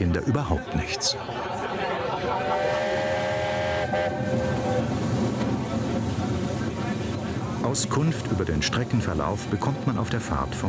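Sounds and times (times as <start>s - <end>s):
speech: 0.1s - 2.7s, 7.7s - 10.6s
laughter: 0.1s - 3.2s
narrow-gauge steam train running: 1.9s - 10.6s.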